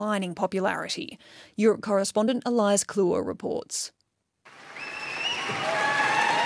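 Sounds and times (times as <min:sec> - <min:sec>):
speech: 0:00.0 - 0:04.0
applause for Keir Starmer outside 10 Downing Street: 0:04.5 - 0:06.4.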